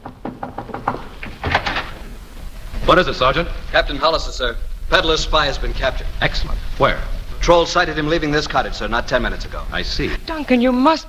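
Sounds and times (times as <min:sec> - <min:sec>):
door knocks and thumps in a house: 0:00.0 - 0:02.9
speech: 0:02.9 - 0:11.0.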